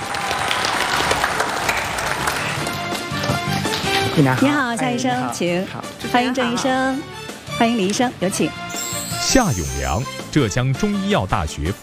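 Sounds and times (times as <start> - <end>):
audience applause: 0.0 - 4.2
speech: 4.2 - 8.7, 9.3 - 11.8.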